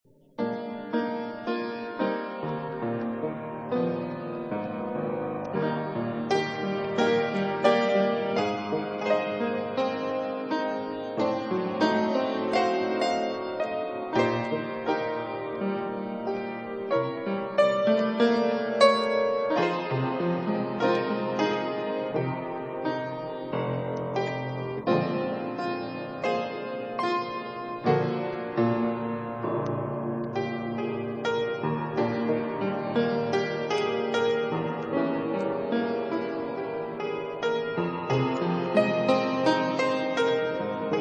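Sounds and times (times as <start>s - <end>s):
piano: 0.0s - 40.9s.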